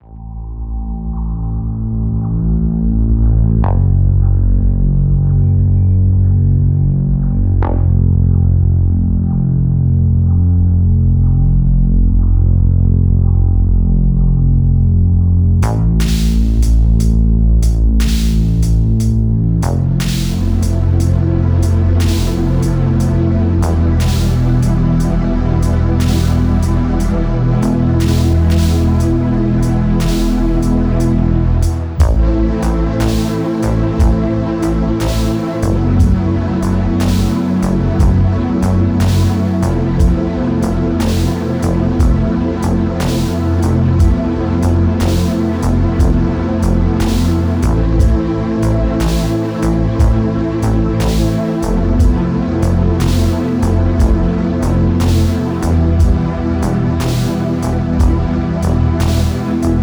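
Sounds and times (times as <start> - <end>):
noise: 0.0 - 59.8.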